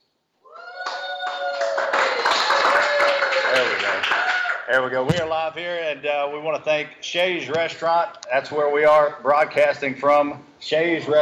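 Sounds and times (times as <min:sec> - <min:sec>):
small group cheering and whooping: 0:00.4 - 0:04.6
clapping: 0:00.7 - 0:04.7
speech: 0:04.7 - 0:11.2.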